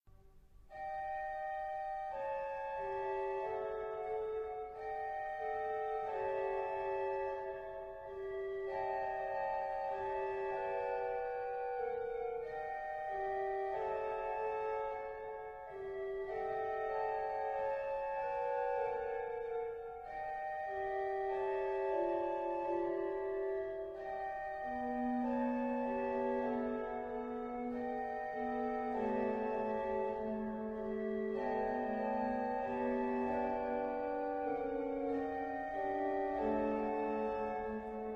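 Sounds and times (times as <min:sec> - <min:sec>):
organ arrangement of a psalm: 0:00.1 - 0:38.1.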